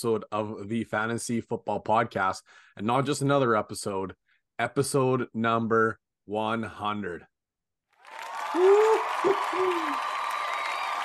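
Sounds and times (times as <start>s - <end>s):
speech: 0.0s - 7.3s
crowd cheering: 8.0s - 11.0s
loud hoots and whoops: 8.2s - 11.0s.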